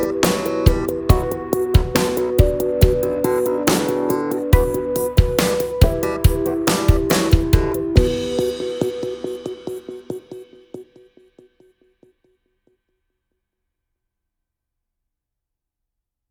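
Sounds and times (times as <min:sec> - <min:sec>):
octaves groove in B minor and E minor at 70 BPM: 0:00.0 - 0:10.6.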